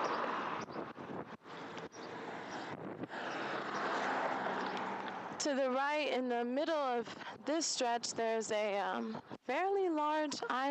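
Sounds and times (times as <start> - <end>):
traffic whizzing by: 0.0 - 7.6
speech: 5.4 - 10.6.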